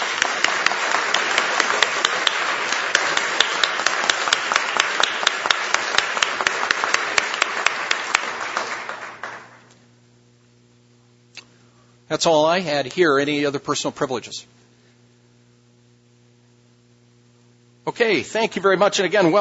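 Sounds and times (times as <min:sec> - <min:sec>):
audience applauding an honored guest: 0:00.0 - 0:09.7
speech: 0:12.1 - 0:14.6, 0:18.0 - 0:19.4.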